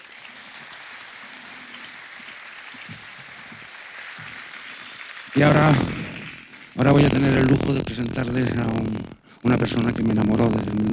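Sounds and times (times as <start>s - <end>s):
audience applause: 0.0s - 8.8s
speech: 5.4s - 6.0s, 6.8s - 10.9s.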